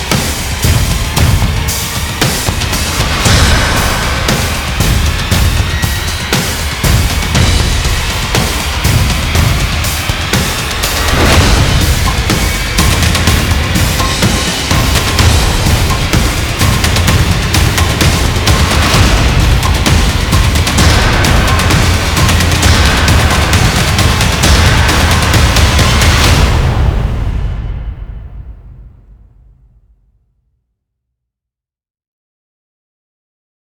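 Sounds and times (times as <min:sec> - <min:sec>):
percussion: 0:00.0 - 0:29.7.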